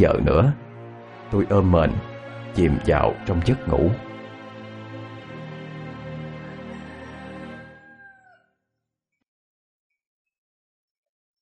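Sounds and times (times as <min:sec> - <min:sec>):
speech: 0:00.0 - 0:00.6, 0:01.3 - 0:04.1
rooster crowing: 0:01.9 - 0:08.6.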